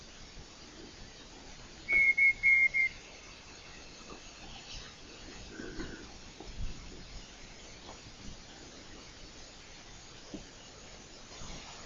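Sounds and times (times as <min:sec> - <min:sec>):
low hiss: 0:00.0 - 0:11.8
night parrot calling with high whistles: 0:01.9 - 0:03.0.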